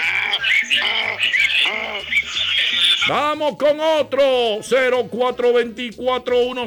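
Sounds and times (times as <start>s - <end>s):
person imitating a donkey braying: 0.0s - 3.1s
speech: 3.1s - 6.6s.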